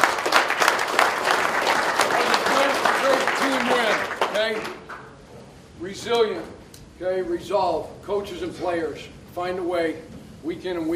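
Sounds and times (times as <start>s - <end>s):
applause: 0.0s - 5.2s
speech: 5.8s - 10.9s.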